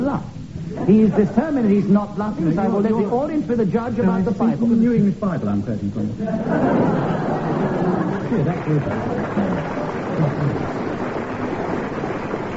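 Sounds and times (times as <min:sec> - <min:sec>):
speech: 0:00.1 - 0:09.6
laughter: 0:00.7 - 0:01.9, 0:06.2 - 0:11.2
audience applause: 0:06.6 - 0:12.5.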